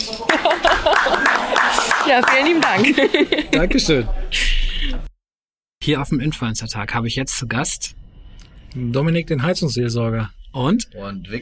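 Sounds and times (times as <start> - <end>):
applause: 0.0 - 3.2
laughter: 0.0 - 5.1
speech: 2.1 - 5.1, 5.8 - 8.0, 8.7 - 11.4.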